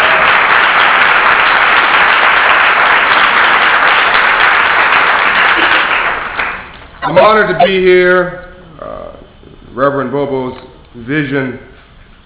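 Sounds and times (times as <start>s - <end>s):
audience round of applause: 0.0s - 6.8s
speech: 7.2s - 8.4s, 9.8s - 11.7s.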